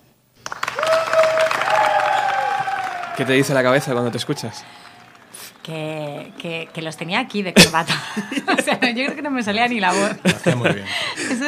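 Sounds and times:
audience applause: 0.4s - 7.6s
speech: 3.2s - 4.8s, 5.6s - 11.4s
laughter: 7.4s - 11.4s.

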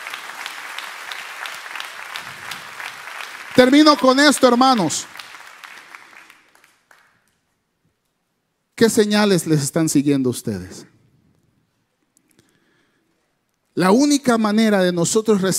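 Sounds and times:
audience applause: 0.0s - 7.2s
speech: 3.6s - 5.1s, 8.8s - 11.0s, 13.8s - 15.5s.

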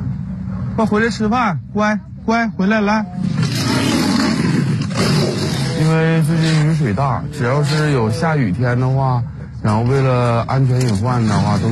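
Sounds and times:
speech: 0.8s - 3.3s, 5.9s - 11.6s
Siberian tiger roaring: 3.2s - 8.9s.

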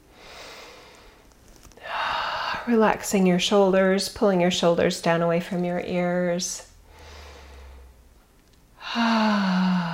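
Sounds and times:
deep breath in through the nose and out the mouth during relaxation exercise: 0.0s - 1.2s, 6.8s - 8.0s, 8.8s - 9.9s
speech: 2.6s - 6.7s.

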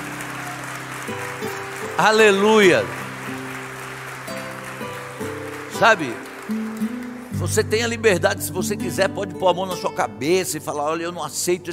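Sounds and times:
audience applause: 0.0s - 7.4s
speech: 1.1s - 3.0s, 5.8s - 6.6s, 7.4s - 11.7s.

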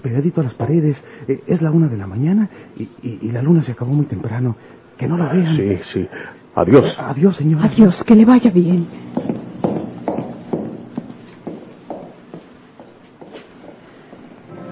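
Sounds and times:
speech: 0.0s - 9.1s
footsteps walking along a city street at night, radio drama effect: 9.0s - 14.3s.

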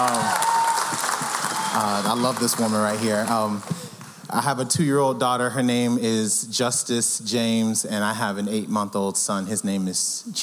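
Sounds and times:
audience applauding: 0.0s - 4.1s
speech: 1.8s - 10.4s.

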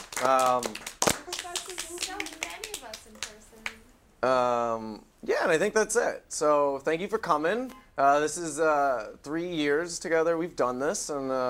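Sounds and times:
audience clapping: 0.0s - 3.8s
speech: 0.2s - 0.9s, 4.2s - 11.4s.

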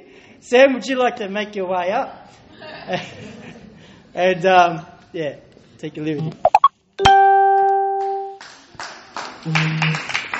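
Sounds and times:
speech: 0.4s - 3.6s, 4.2s - 6.5s, 9.4s - 10.1s
laughter: 2.6s - 4.0s
audience clapping hands: 8.0s - 10.3s.

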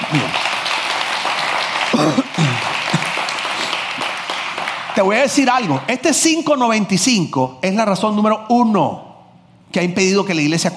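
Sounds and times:
audience applause: 0.0s - 5.9s
speech: 0.1s - 0.5s, 5.0s - 9.1s, 9.7s - 10.7s.

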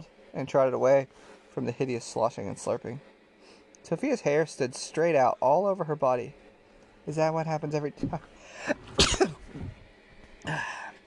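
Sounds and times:
speech: 0.0s - 3.1s, 3.8s - 6.4s, 7.1s - 8.8s, 10.4s - 10.8s
person sneezing: 8.6s - 9.7s, 10.5s - 10.9s.

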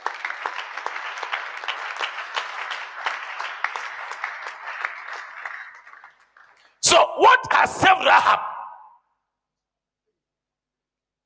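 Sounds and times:
audience clapping: 0.0s - 7.4s
speech: 7.0s - 8.5s.

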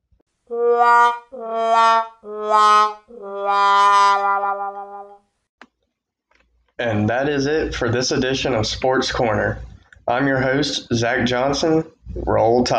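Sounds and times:
speech: 0.5s - 4.2s, 7.0s - 12.7s
womp sound effect of disapproval: 0.5s - 5.2s.

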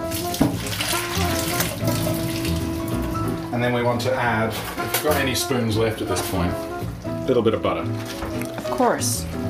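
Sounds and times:
water from boiled potatoes pouring into a kitchen sink: 0.0s - 4.1s
speech: 3.6s - 6.7s, 7.3s - 9.4s.

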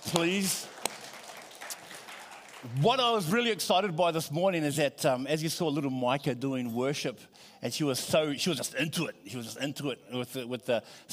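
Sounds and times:
audience applause: 0.0s - 2.9s
speech: 0.1s - 0.8s, 2.6s - 11.1s.

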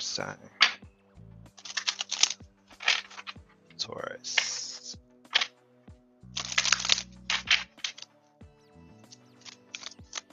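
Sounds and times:
speech: 0.0s - 0.9s, 3.9s - 4.7s
tarot cards being reshuffled: 1.6s - 3.4s, 4.3s - 5.5s, 6.4s - 8.1s, 9.4s - 10.3s.

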